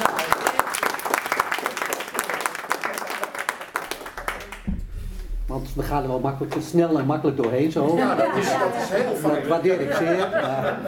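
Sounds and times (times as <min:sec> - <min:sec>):
audience applause for choir board: 0:00.0 - 0:04.4
speech: 0:05.8 - 0:10.8
laughter: 0:08.1 - 0:10.8.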